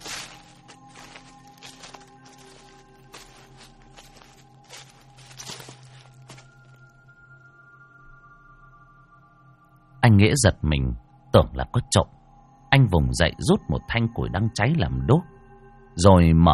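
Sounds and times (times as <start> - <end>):
rustling footsteps outside the door of a bamboo and clay riverside hut: 0.0 - 6.9
speech: 10.2 - 12.2, 12.8 - 15.3, 16.0 - 16.5.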